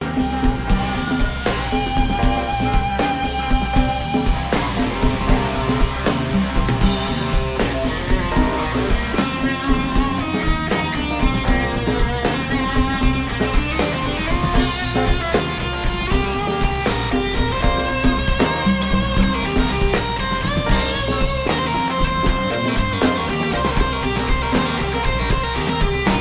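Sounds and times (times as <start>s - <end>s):
war drums: 0.0s - 26.1s.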